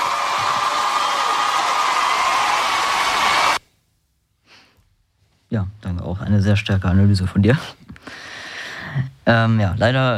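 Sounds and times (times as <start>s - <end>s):
applause sound effect from a large crowd: 0.0s - 3.6s
speech: 5.5s - 8.2s, 9.0s - 10.1s.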